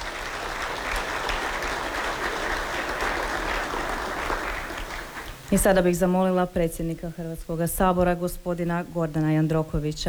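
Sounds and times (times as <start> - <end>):
audience applause for student quiz winners in the Croatian Parliament: 0.0 - 5.5
speech: 5.5 - 10.0.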